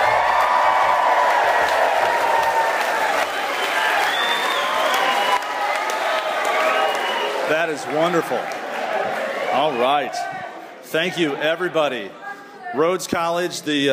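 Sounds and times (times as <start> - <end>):
live studio audience at Rhodes College whooping: 0.0 - 7.8
live studio audience at Rhodes College in Memphis, Tennessee clapping: 0.0 - 9.5
speech: 7.7 - 8.6, 9.5 - 13.9.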